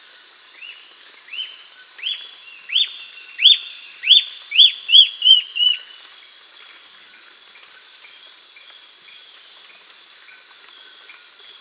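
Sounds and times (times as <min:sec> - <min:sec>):
bird whistled calls: 0:02.0 - 0:05.9.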